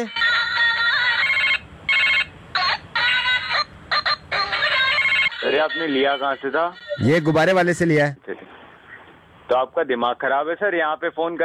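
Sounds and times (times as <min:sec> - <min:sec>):
speech: 0:00.0 - 0:00.2, 0:05.7 - 0:08.4, 0:09.5 - 0:11.4
phone ringtone ringing: 0:00.2 - 0:07.6.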